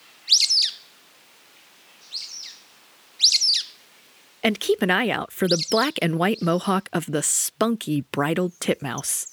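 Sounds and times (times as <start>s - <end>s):
squeaky calls of sulphur-bellied flycatchers: 0.3s - 0.8s, 2.1s - 2.6s, 3.2s - 3.8s, 5.4s - 6.6s
speech: 4.4s - 9.3s.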